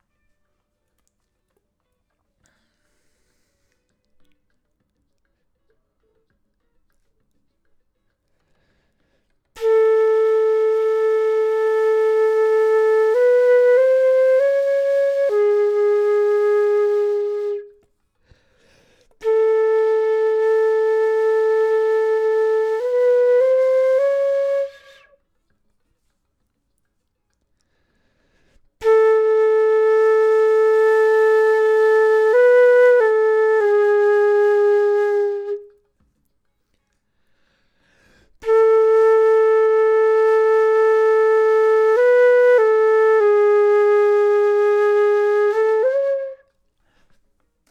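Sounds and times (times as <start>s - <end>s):
flute: 9.5s - 18.0s, 19.2s - 25.6s, 28.8s - 36.0s, 38.4s - 46.8s.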